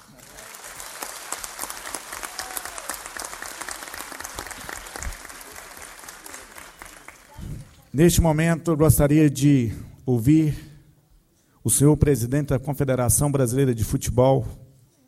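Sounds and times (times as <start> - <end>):
audience applause: 0.0 - 7.9
speech: 8.0 - 10.6, 11.6 - 14.6.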